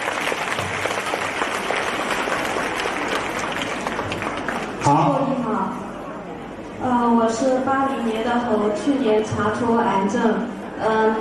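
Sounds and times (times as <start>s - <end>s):
warm applause: 0.0s - 5.2s
speech: 4.9s - 5.4s, 7.3s - 11.1s.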